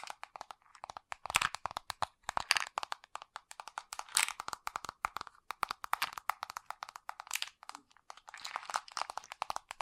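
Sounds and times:
fast crunchy tapping: 0:00.2 - 0:07.8, 0:08.4 - 0:09.7.

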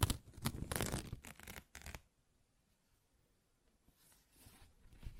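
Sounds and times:
paper tearing: 0:00.0 - 0:02.0.

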